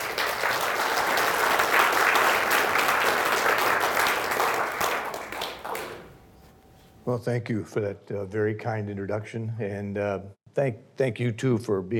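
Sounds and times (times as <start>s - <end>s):
audience applause at the Pritzker Military Museum and Library: 0.0s - 6.2s
speech: 7.1s - 11.9s.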